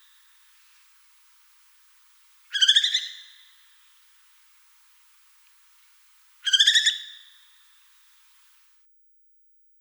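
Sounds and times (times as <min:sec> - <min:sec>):
northern hawk owl calling: 0:02.5 - 0:03.8, 0:06.4 - 0:07.5.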